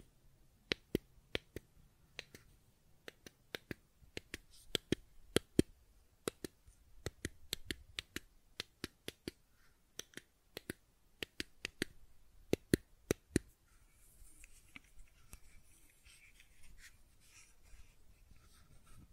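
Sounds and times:
fidget cube sharp clicks: 0:00.7 - 0:13.5.

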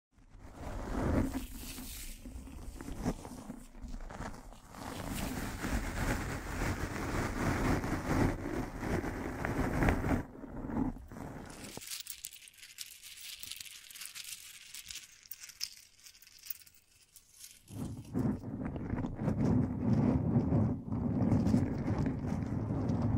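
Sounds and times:
microphone being brushed and scratched: 0:00.5 - 0:11.8, 0:17.6 - 0:23.1.

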